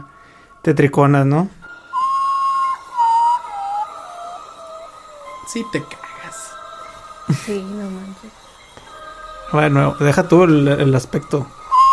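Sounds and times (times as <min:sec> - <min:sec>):
speech: 0:00.6 - 0:01.6, 0:05.5 - 0:06.0, 0:07.3 - 0:08.4, 0:09.5 - 0:11.6
owl call: 0:01.8 - 0:07.4, 0:11.6 - 0:11.9.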